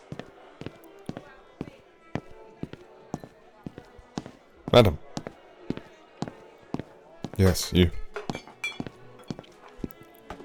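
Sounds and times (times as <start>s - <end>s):
speech: 4.7s - 5.0s, 7.4s - 8.0s
dishes clinking while being cleared: 8.2s - 9.5s.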